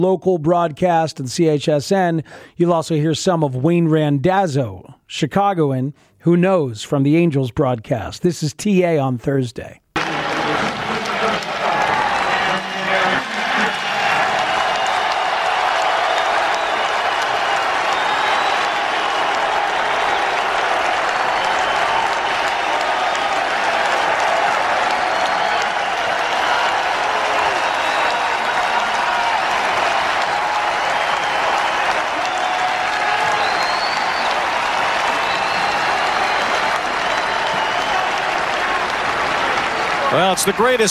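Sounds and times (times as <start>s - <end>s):
speech: 0.0s - 9.8s, 40.3s - 40.8s
large stadium crowd clapping: 10.0s - 40.8s.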